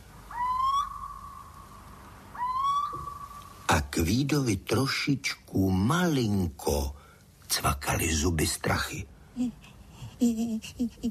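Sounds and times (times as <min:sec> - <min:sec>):
little owl calling from brushwood: 0:00.0 - 0:03.7
speech: 0:04.0 - 0:11.0.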